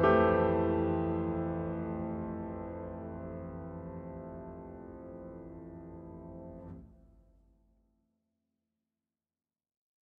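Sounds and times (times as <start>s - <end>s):
piano piece: 0.0s - 7.4s.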